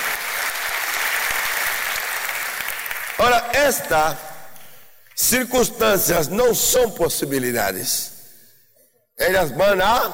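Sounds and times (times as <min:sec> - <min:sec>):
crowd applauding: 0:00.0 - 0:03.4
speech: 0:03.2 - 0:04.3, 0:05.2 - 0:08.1, 0:09.2 - 0:10.1.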